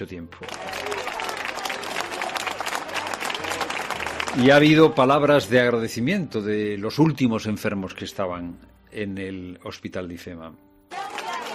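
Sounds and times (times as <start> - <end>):
speech: 0.0 - 0.8, 4.3 - 10.7
hospital staff clapping: 0.2 - 5.6, 10.9 - 11.5.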